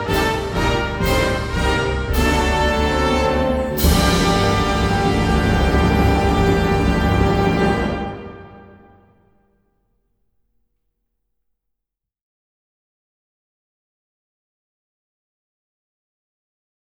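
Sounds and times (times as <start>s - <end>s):
national anthem: 0.0s - 9.0s.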